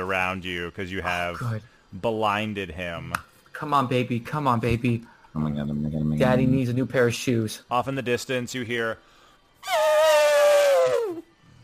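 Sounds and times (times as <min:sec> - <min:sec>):
speech: 0:00.1 - 0:10.0
voice imitating elephant or mammoth trumpet: 0:09.6 - 0:11.2.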